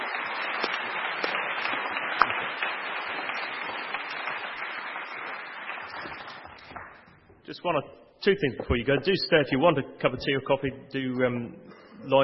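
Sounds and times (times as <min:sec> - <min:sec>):
audience applauding: 0:00.0 - 0:07.1
speech: 0:07.5 - 0:12.2.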